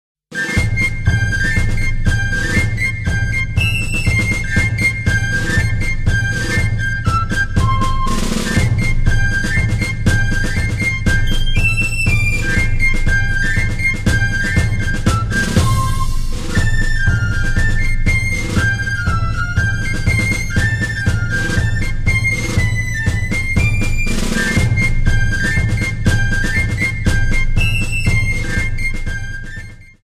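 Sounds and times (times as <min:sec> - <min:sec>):
marching music: 0:00.4 - 0:29.9.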